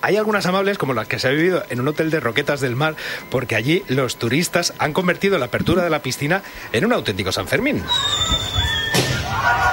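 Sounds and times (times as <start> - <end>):
speech: 0.0 - 9.6
person whistling: 7.8 - 9.0.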